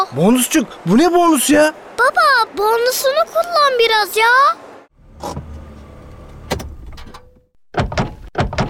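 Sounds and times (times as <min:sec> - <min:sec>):
speech: 0:00.2 - 0:04.7, 0:05.2 - 0:05.5
door handle and latch rattling: 0:06.5 - 0:08.6.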